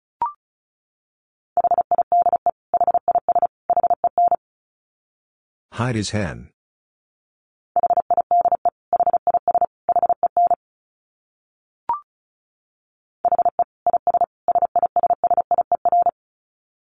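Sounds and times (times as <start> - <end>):
fast Morse code beeps at 35 words per minute: 1.6 - 4.4, 7.8 - 10.6, 13.3 - 16.2
speech: 5.8 - 6.5.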